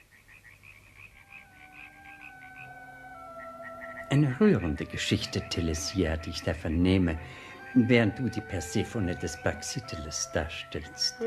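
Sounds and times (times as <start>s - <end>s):
frogs croaking from a temple pond: 0.0s - 7.8s
speech: 4.1s - 11.2s.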